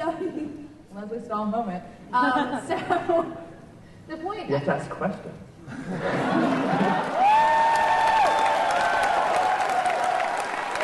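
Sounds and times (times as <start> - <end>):
speech: 1.0 - 3.5, 4.1 - 7.0
laughter: 5.7 - 7.2
conference audience applauding and cheering: 6.3 - 10.8.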